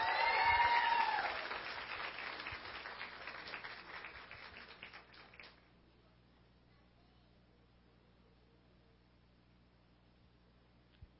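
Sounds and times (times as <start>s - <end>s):
audience applause: 0.0s - 5.6s.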